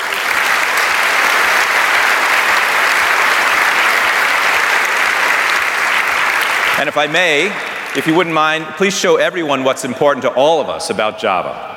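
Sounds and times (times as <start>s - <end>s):
audience applause: 0.0s - 9.2s
speech: 6.8s - 11.7s.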